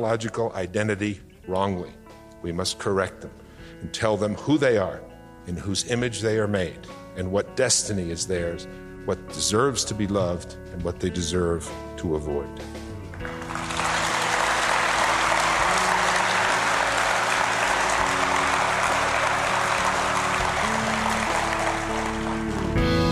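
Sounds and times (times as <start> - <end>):
speech: 0.0 - 12.8
audience applause for Dr. Bill Bennett: 13.2 - 23.0.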